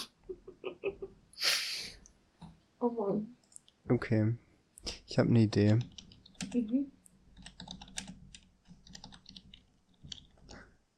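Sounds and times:
speech: 2.8 - 4.4, 5.1 - 7.0
quiet typing on a computer keyboard: 5.6 - 6.7, 7.4 - 10.5.

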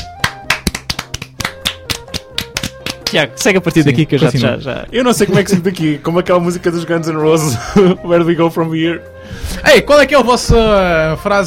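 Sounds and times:
small group hand clapping: 0.0 - 3.6
speech: 3.1 - 11.4.

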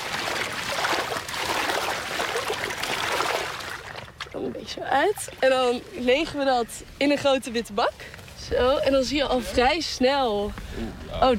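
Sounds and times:
dip net sweeping through pond water: 0.0 - 4.4
speech: 4.7 - 11.3.

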